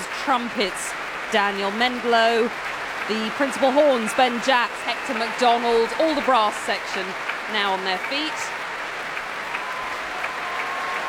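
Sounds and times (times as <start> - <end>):
large concert audience applause: 0.0 - 11.0
speech: 0.2 - 8.5.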